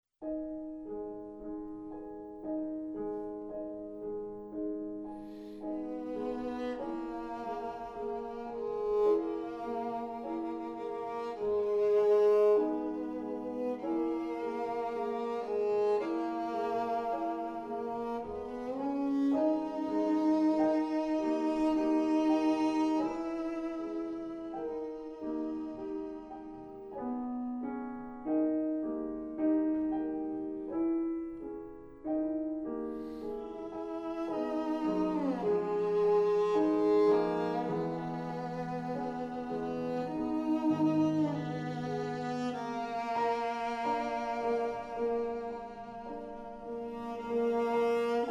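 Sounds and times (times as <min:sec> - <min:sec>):
violin sonata: 0:00.3 - 0:48.2.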